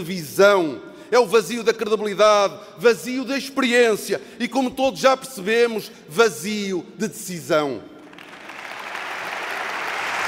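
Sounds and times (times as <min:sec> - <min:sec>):
speech: 0:00.0 - 0:07.9
audience applause: 0:08.1 - 0:10.2.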